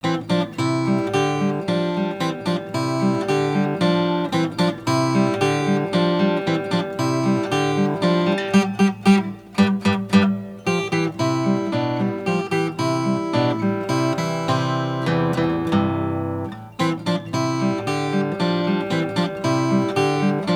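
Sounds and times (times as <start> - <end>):
instrumental music: 0.0 - 20.5.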